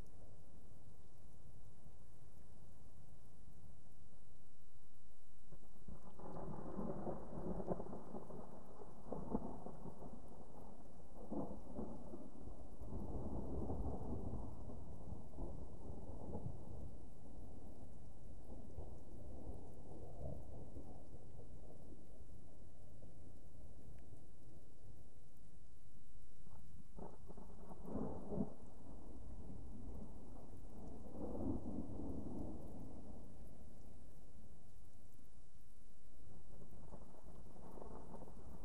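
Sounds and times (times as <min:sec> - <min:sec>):
explosive distant thunder: 0:05.8 - 0:22.2, 0:27.0 - 0:34.1, 0:36.3 - 0:38.6.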